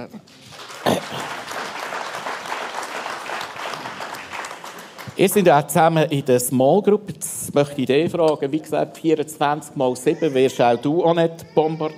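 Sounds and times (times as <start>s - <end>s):
audience applause: 0.3s - 5.8s
speech: 5.2s - 11.9s.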